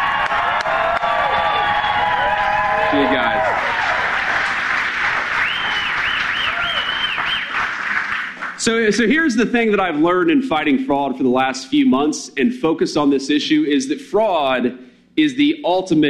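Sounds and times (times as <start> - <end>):
audience applause: 0.0 - 8.6
speech: 8.6 - 16.0.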